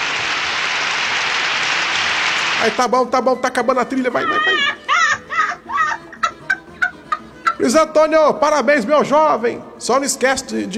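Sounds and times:
audience applause at a party or live show: 0.0 - 2.8
speech: 2.6 - 4.9, 7.6 - 10.7
laughter: 4.1 - 8.1.

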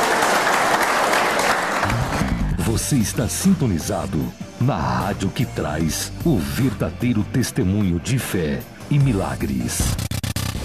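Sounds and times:
church congregation applauding: 0.0 - 2.6
speech: 2.8 - 10.1.

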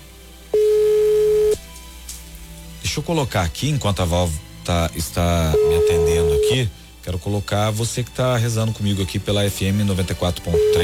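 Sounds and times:
ringing tone of an outgoing telephone call: 0.5 - 1.6, 5.6 - 6.6, 10.6 - 10.8
speech: 3.0 - 10.8.

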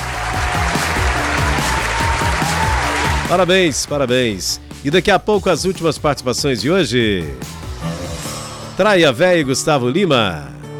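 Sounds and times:
audience applause: 0.0 - 3.8
speech: 3.3 - 7.7, 8.8 - 10.6.

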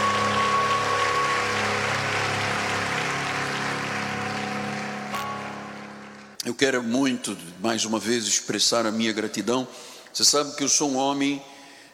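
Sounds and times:
crowd applause: 0.0 - 6.4
speech: 6.5 - 11.6.

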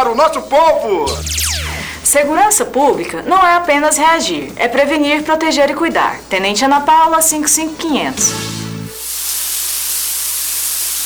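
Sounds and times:
speech: 0.1 - 8.6
low hum: 1.1 - 2.6
shower water running: 7.9 - 11.0.

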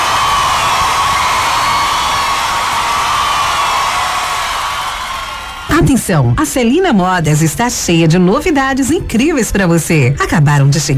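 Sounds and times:
crowd applause: 0.0 - 6.0
speech: 5.8 - 10.9.

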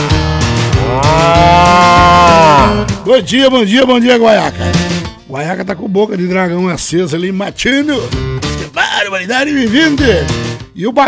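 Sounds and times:
cattle mooing: 0.0 - 3.1
speech: 3.1 - 11.0.

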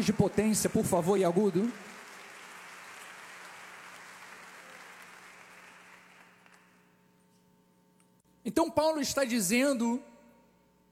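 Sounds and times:
speech: 0.0 - 2.0, 8.4 - 10.1
audience applauding: 0.0 - 6.8.

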